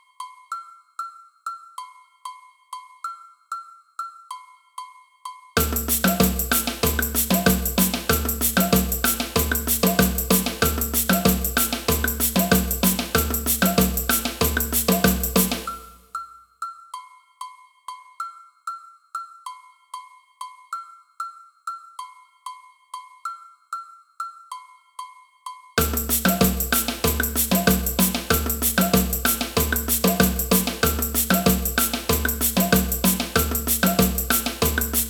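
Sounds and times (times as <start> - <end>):
agogo bells in a samba band: 5.6 - 15.9, 25.8 - 35.0.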